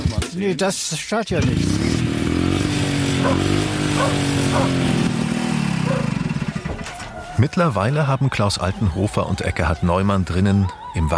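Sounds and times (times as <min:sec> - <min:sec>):
speech: 0:00.4 - 0:02.0, 0:03.2 - 0:05.2, 0:07.4 - 0:11.1
old engine idling: 0:01.5 - 0:07.4
short barks: 0:03.2 - 0:04.9, 0:05.8 - 0:06.2.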